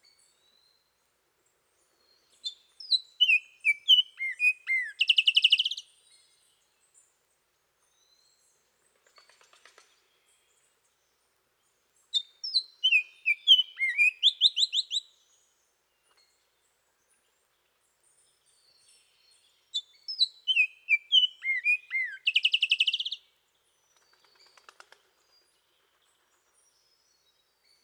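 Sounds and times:
bird song in Costa Rican cloud forest: 0:00.0 - 0:27.8.

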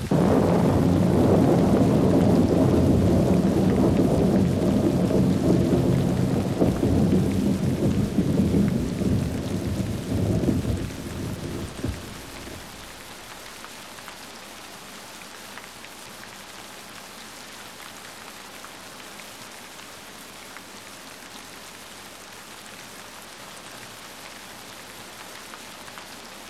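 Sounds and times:
thunder in thunderstorms: 0:00.0 - 0:13.4
rain: 0:00.0 - 0:26.4.

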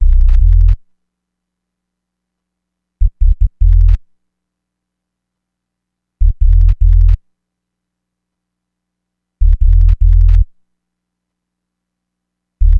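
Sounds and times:
hip-hop bass: 0:00.0 - 0:00.8, 0:03.1 - 0:04.0, 0:06.2 - 0:07.2, 0:09.4 - 0:10.4.

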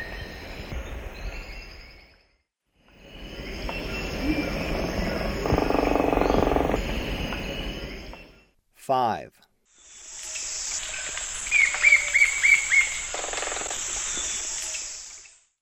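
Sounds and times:
Cream-colored Woodpecker in the eastern lowlands of South America: 0:03.6 - 0:08.3, 0:11.7 - 0:13.8.

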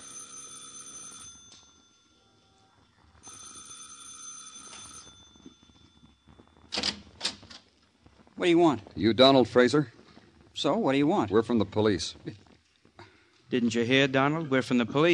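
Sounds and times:
doorbell ringing: 0:00.0 - 0:02.4, 0:03.2 - 0:06.4
speech: 0:08.4 - 0:10.0, 0:10.6 - 0:12.4, 0:13.5 - 0:15.1.

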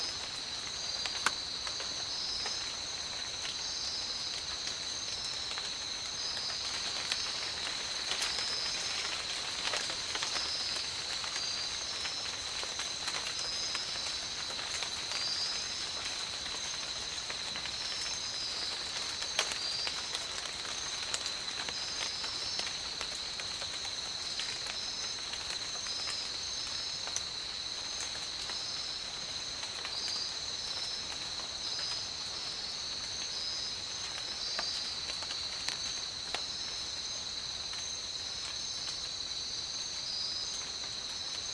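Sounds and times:
tropical rain: 0:00.0 - 0:41.5.

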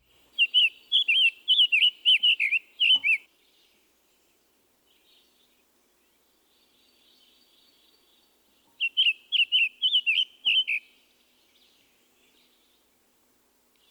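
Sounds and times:
summer tanager singing whistled phrases: 0:00.4 - 0:03.2, 0:08.8 - 0:10.8.

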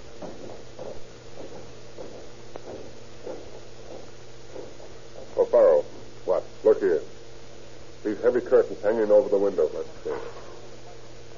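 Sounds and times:
footsteps of people climbing a flight of stairs: 0:00.0 - 0:06.1
speech: 0:08.5 - 0:10.2.

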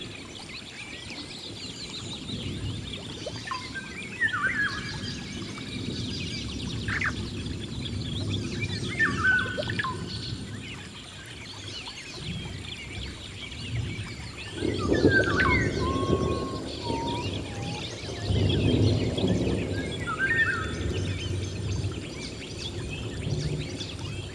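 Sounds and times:
rainfall in a rainforest: 0:00.0 - 0:24.3.

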